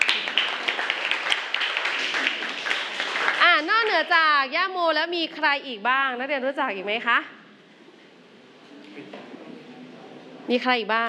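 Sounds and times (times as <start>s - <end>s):
classroom students clapping hands: 0.0s - 4.2s
speech: 3.6s - 7.4s, 10.5s - 11.0s.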